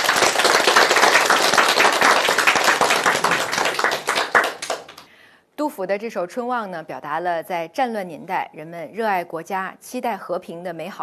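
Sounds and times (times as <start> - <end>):
audience applause: 0.0 - 5.1
speech: 5.8 - 11.0.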